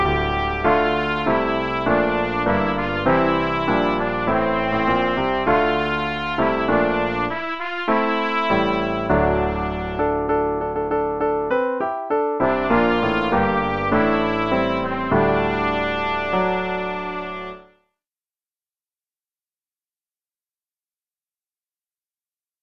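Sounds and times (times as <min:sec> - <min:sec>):
trumpet: 0:00.0 - 0:11.5, 0:12.4 - 0:17.8.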